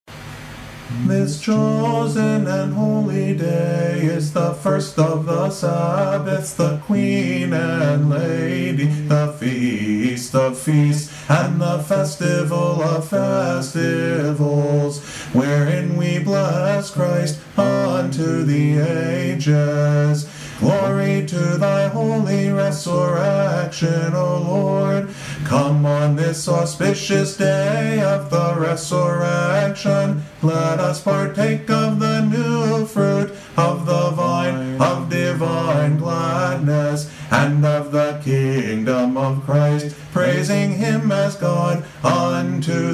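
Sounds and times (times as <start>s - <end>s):
ode chant: 0.9s - 42.9s.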